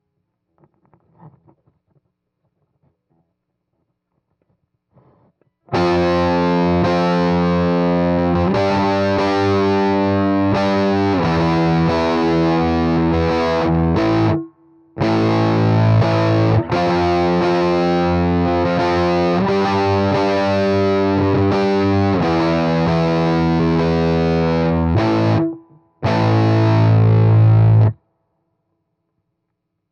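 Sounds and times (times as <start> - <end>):
heavy electric guitar: 5.7 - 28.0.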